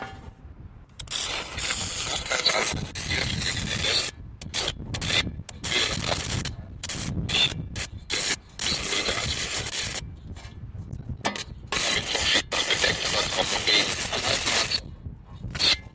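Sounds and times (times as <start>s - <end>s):
electrical sparks arcing between a steel transmitter guy wire and a shovel: 1.0s - 10.1s, 11.7s - 14.8s.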